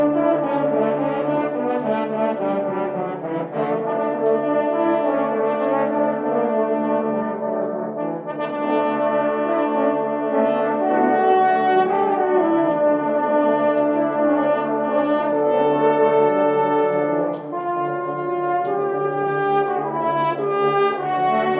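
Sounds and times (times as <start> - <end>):
horn choir playing: 0.0 - 21.5.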